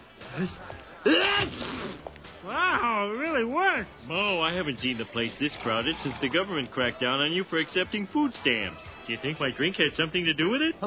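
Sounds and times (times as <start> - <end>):
speech: 0.4 - 1.6, 2.4 - 10.8
person sneezing: 1.1 - 2.0.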